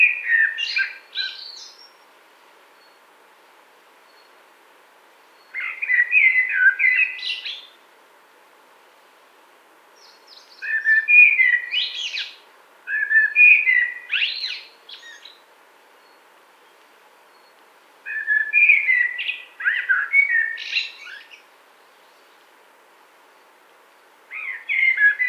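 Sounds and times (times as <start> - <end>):
common blackbird song: 0.0 - 2.1, 5.3 - 7.8, 10.0 - 22.5, 23.3 - 25.2.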